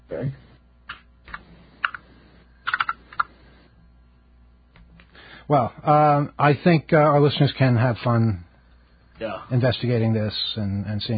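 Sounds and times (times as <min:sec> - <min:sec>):
speech: 0:00.2 - 0:00.4, 0:05.5 - 0:08.5, 0:09.2 - 0:11.1
computer keyboard typing: 0:02.6 - 0:03.3.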